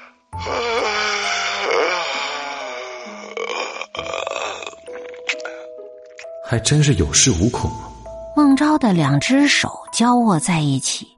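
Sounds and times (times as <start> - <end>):
yawn: 0.4 - 5.7
speech: 6.5 - 11.1.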